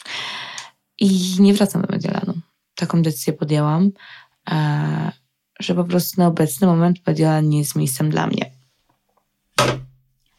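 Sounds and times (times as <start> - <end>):
speech: 1.0 - 8.5
phone falling onto a surface: 9.6 - 10.0.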